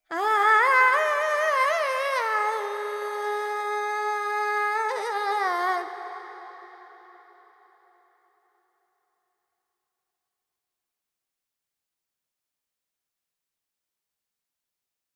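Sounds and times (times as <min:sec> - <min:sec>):
Carnatic female alap in Purvi Kalyani: 0:00.1 - 0:06.8.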